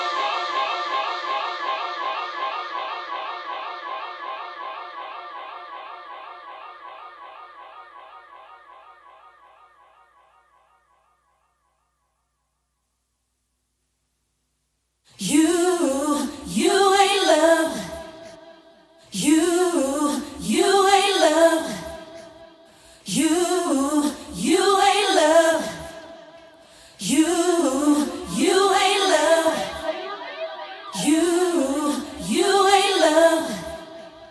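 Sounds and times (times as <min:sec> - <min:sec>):
a cappella singing: 0:00.0 - 0:07.6, 0:15.1 - 0:34.3.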